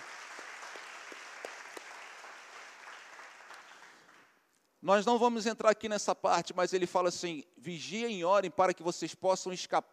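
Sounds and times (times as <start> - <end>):
applause: 0.0 - 4.4
speech: 4.8 - 9.9.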